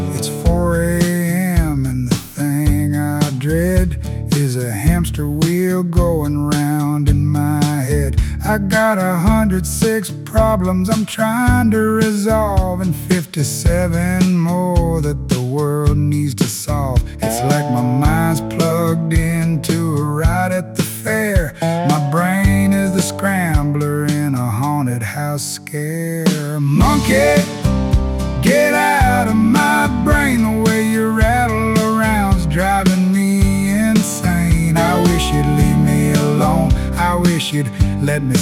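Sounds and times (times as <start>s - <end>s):
person singing: 0.2s - 38.3s.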